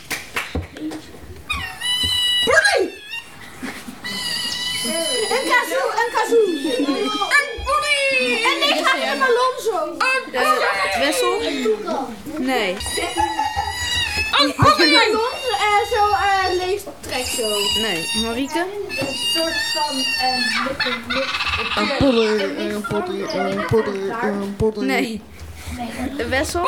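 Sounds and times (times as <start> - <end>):
sea otter call: 1.5 - 7.6, 12.8 - 22.1
laughter: 2.5 - 9.8, 10.4 - 16.2, 19.6 - 24.3
speech: 14.4 - 26.6.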